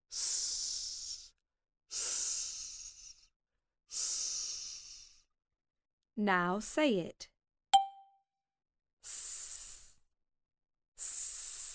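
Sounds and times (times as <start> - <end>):
voice imitating snake hiss: 0.2 - 3.3, 3.9 - 5.2, 9.1 - 10.0, 11.0 - 11.7
speech: 6.2 - 7.3.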